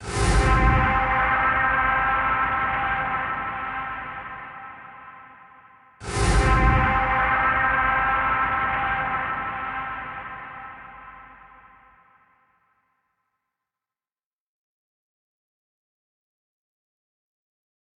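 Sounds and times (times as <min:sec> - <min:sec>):
suspense music: 0:00.0 - 0:12.2.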